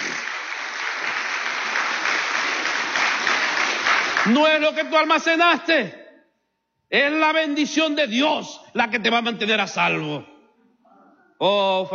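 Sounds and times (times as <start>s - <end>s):
audience applause: 0.0s - 4.6s
speech: 4.2s - 6.0s, 6.9s - 10.3s, 11.4s - 11.9s.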